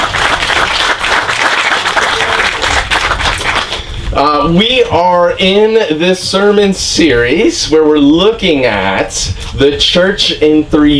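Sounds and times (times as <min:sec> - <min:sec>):
audience applause: 0:00.0 - 0:03.9
speech: 0:04.2 - 0:10.9.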